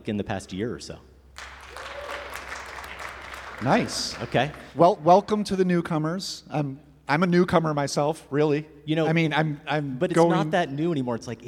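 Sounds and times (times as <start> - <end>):
speech: 0.0 - 1.1, 3.6 - 11.4
audience round of applause: 1.4 - 4.7.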